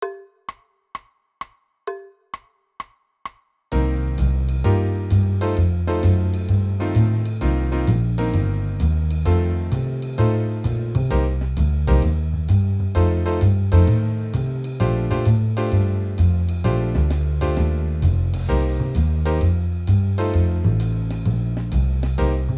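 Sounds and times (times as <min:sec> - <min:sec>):
musical warm-up exercises in B-flat major: 0:00.0 - 0:22.5.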